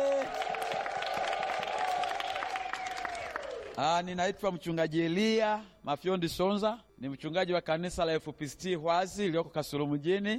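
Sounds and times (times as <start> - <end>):
church congregation clapping during a Swahili-language service: 0.0 - 3.9
speech: 3.8 - 10.3.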